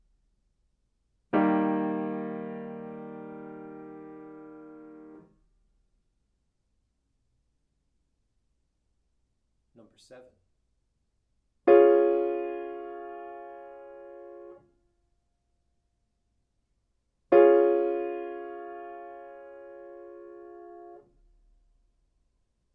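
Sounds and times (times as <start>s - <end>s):
chords: 1.4s - 5.3s, 11.7s - 14.6s, 17.3s - 21.1s.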